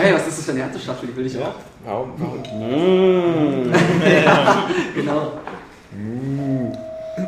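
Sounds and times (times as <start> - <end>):
speech: 0.0 - 7.2
phone ringing: 2.2 - 3.0, 6.8 - 7.2
laughter: 3.3 - 5.6.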